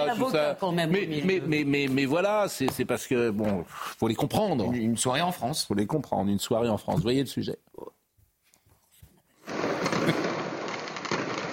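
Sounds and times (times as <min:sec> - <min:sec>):
speech: 0:00.0 - 0:07.8
firework mortars fired at the La Courneuve police station at nightfall: 0:09.4 - 0:11.5.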